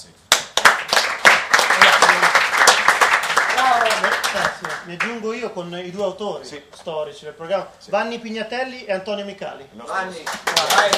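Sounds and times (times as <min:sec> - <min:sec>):
audience applause: 0:00.6 - 0:04.8, 0:10.2 - 0:10.9
speech: 0:04.4 - 0:10.9.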